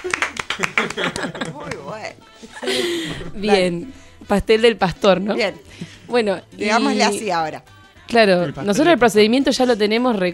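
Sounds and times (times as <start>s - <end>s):
applause: 0.0s - 1.9s
laughter: 0.0s - 3.9s
speech: 0.1s - 10.3s.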